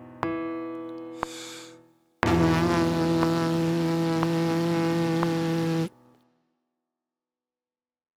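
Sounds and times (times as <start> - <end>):
lip buzz warm-up: 1.2 - 1.7, 2.3 - 5.9
trumpet warm-up: 1.2 - 6.0.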